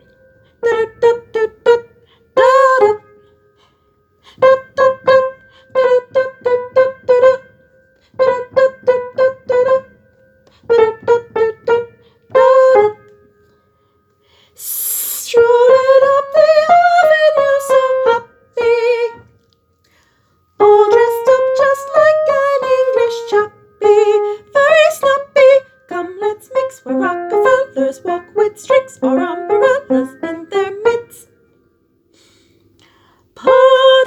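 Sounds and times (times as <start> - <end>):
soprano singing: 0.0 - 3.1, 4.4 - 7.5, 8.2 - 9.9, 10.7 - 13.0, 14.6 - 19.3, 20.6 - 31.3, 33.4 - 34.0.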